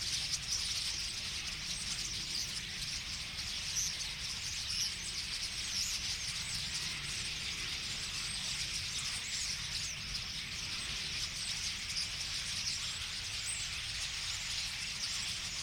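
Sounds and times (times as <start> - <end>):
common starling flock chatter: 0.0 - 15.6.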